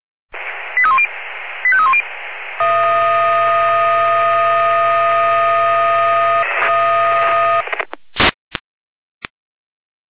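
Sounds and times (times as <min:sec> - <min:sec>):
fire brigade radio alert tones: 0:00.6 - 0:07.8
radio clicks and short bursts: 0:06.5 - 0:08.3.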